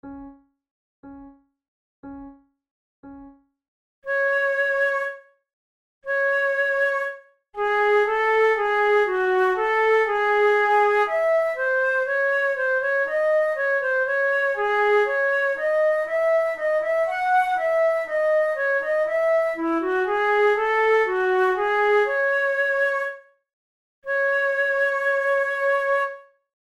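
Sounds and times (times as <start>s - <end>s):
flute prelude: 4.1s - 5.4s, 6.1s - 23.3s, 24.1s - 26.4s.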